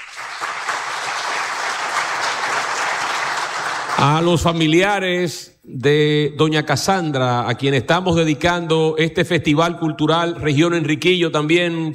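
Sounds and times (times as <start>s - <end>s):
audience applause: 0.0s - 4.4s
speech: 4.0s - 11.9s.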